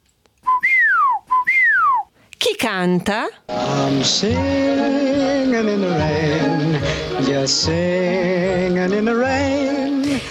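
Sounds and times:
person whistling: 0.4 - 2.1
speech: 2.5 - 10.2.

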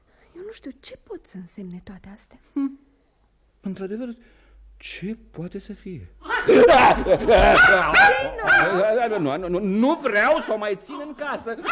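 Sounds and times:
speech: 0.5 - 2.8, 3.6 - 11.7
laughter: 6.2 - 9.5, 11.5 - 11.7
dog barking: 6.3 - 8.9.

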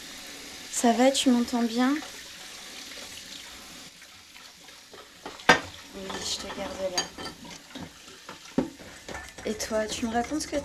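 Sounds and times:
tap water running into a sink: 0.0 - 10.6
speech: 0.8 - 2.2, 9.6 - 10.6
dishes clinking and splashing as they are washed: 4.9 - 10.6.

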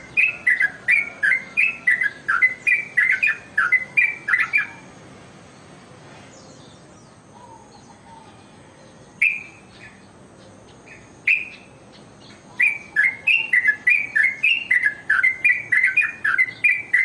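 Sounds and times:
bird ringing chirps: 0.0 - 4.9, 9.2 - 10.0, 10.7 - 17.0.

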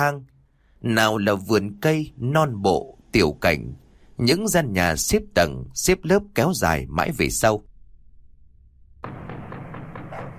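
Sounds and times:
speech: 0.0 - 7.7
hard banging on a gate: 9.0 - 10.3
dog barking inside the house: 10.0 - 10.3.

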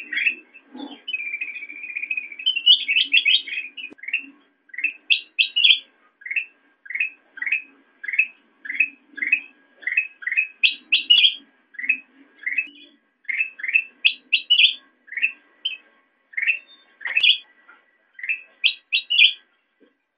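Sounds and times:
sooty-headed bulbul chattering: 0.0 - 17.5, 18.2 - 19.4.

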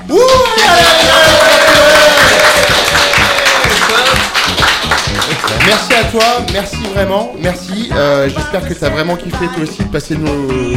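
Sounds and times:
audience applause and cheering: 0.0 - 6.2
speech: 5.7 - 10.7.

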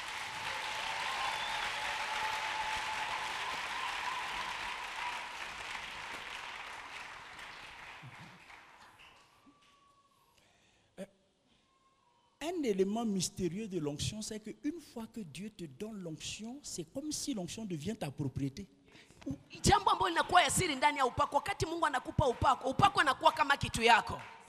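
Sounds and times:
congregation at a church convention applauding the preacher: 0.0 - 10.0, 22.2 - 24.4
speech: 12.5 - 24.4.

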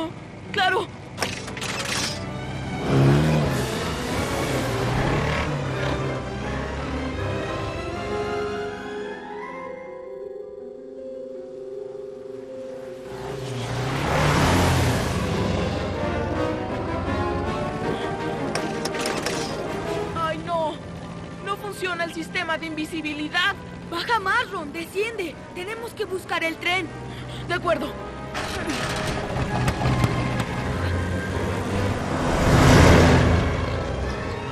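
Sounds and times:
speech: 0.6 - 1.0, 22.6 - 29.7
flying car engine revving: 1.1 - 8.4, 12.9 - 22.0, 28.0 - 34.5.

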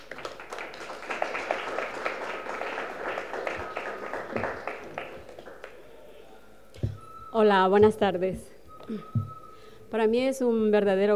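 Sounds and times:
audience applause for a poet: 0.0 - 6.2
speech: 7.4 - 9.2, 9.9 - 11.1.

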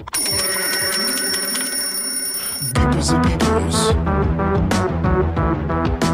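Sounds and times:
bicycle bell ringing: 0.2 - 2.8
speech: 3.0 - 6.0.

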